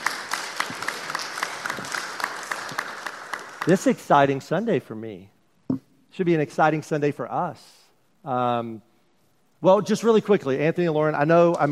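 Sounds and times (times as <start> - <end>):
crowd applause: 0.0 - 4.1
speech: 3.6 - 8.9, 9.6 - 11.6.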